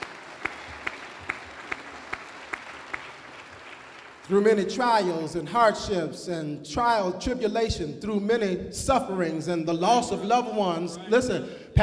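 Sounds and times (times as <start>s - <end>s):
audience applause: 0.0s - 4.3s
speech: 4.3s - 11.8s.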